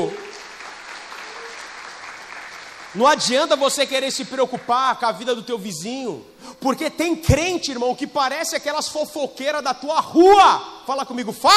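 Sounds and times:
audience applause: 0:00.0 - 0:03.2
speech: 0:02.9 - 0:11.5.

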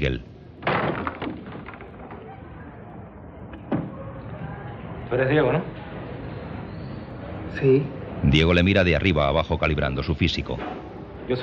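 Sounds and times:
house door being opened: 0:00.6 - 0:02.8
speech: 0:05.1 - 0:05.8, 0:07.6 - 0:11.4.

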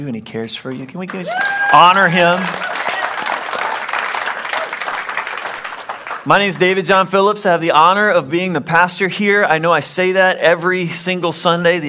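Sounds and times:
speech: 0:00.0 - 0:02.8, 0:06.2 - 0:11.8
audience applause: 0:01.1 - 0:06.3.

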